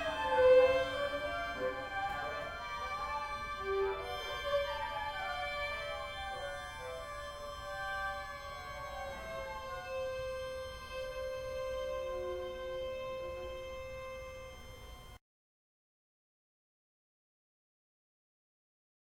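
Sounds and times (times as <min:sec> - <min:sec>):
string suite: 0:00.0 - 0:15.2.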